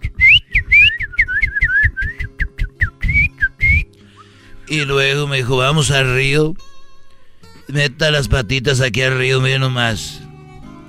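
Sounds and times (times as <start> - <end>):
person whistling an imitation of little birds singing: 0.0 - 4.4
speech: 4.7 - 6.7, 7.7 - 10.2.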